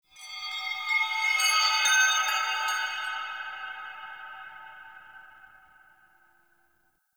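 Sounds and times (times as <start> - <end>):
chimes: 0.2 - 5.7.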